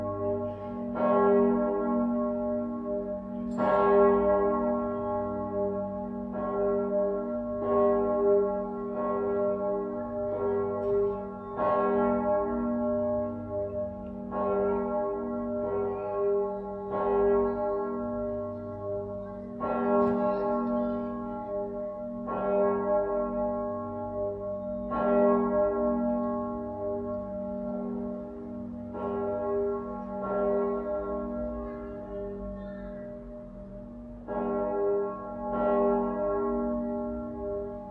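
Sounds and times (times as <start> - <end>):
cathedral bell tuned to G sharp ringing: 0.0 - 37.8.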